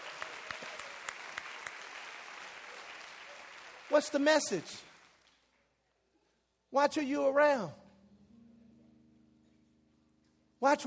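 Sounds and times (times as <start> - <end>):
crowd clapping: 0.0 - 5.8
speech: 3.9 - 4.9, 6.7 - 7.8, 10.6 - 10.8.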